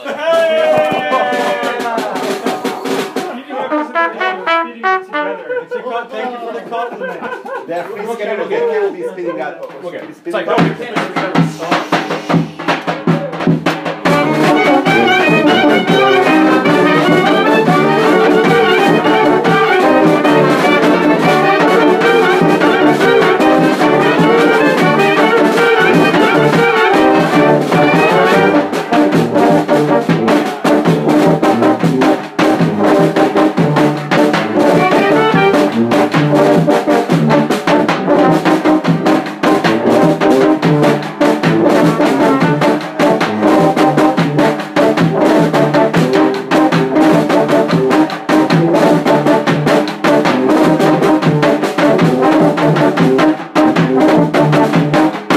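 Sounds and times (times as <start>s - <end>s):
Bulgarian folk music medley: 0.0s - 7.9s, 9.6s - 55.3s
laughter: 0.0s - 9.9s, 14.6s - 28.9s.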